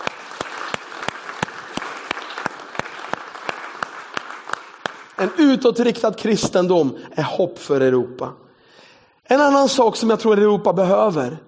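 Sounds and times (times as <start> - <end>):
audience applause: 0.0 - 5.5
speech: 5.2 - 8.5, 9.3 - 11.4.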